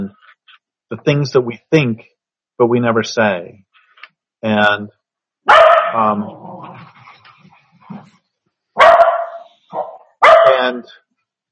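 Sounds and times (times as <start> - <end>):
speech: 0.9 - 3.6, 4.4 - 6.5, 10.6 - 11.0
dogs barking: 5.5 - 6.2, 8.8 - 10.8
dog yips and growls: 5.5 - 7.2, 8.8 - 10.6.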